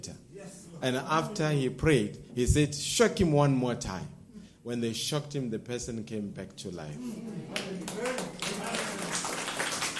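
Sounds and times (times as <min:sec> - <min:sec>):
speech: 0:00.0 - 0:08.4
audience clapping: 0:07.5 - 0:09.9.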